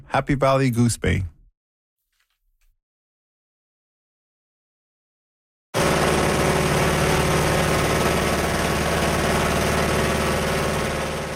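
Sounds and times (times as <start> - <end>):
speech: 0.2 - 1.3
75-year-old de Havilland Beaver float plane engine: 5.8 - 11.3.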